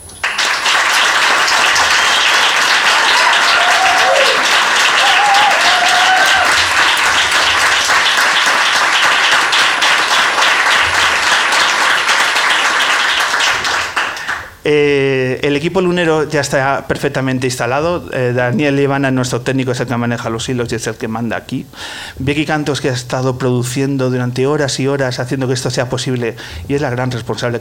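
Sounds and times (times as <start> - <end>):
audience applause: 0.2 - 14.6
speech: 14.7 - 27.6.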